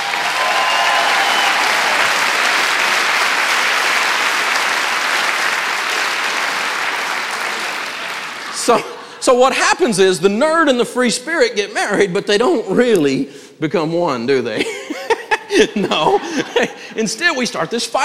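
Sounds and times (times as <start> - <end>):
round of applause: 0.0 - 8.8
laughter: 7.7 - 9.2, 14.6 - 17.4
speech: 8.7 - 14.8, 15.5 - 18.0.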